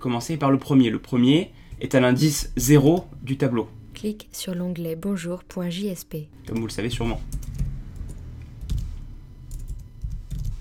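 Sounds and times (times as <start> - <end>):
speech: 0.0 - 7.4
typing on a computer keyboard while writing code in a JSP file: 7.3 - 8.8, 9.5 - 10.5.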